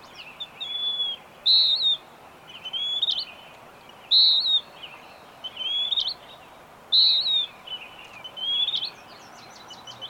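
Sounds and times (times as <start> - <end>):
bird singing whistled phrases: 0.6 - 2.0, 2.6 - 3.3, 4.1 - 4.7, 5.4 - 6.2, 6.9 - 8.9.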